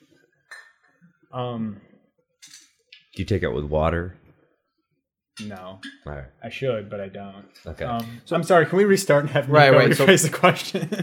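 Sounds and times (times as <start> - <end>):
whisky glassware clinking: 0.4 - 1.0, 2.4 - 2.8
speech: 1.3 - 1.9, 3.2 - 4.2, 5.4 - 11.0.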